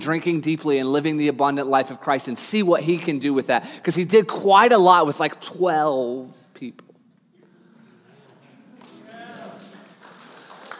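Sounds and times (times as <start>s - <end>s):
speech: 0.0s - 6.8s
people clapping: 7.8s - 10.7s.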